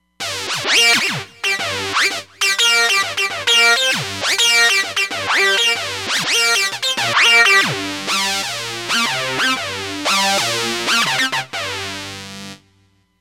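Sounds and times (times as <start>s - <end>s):
Distro FXM effect on Roland Fantom XR: 0.2s - 12.2s.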